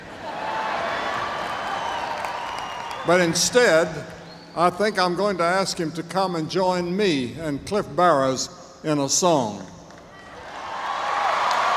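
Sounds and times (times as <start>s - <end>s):
audience applause: 0.2s - 3.3s, 10.4s - 11.7s
speech: 3.1s - 9.8s.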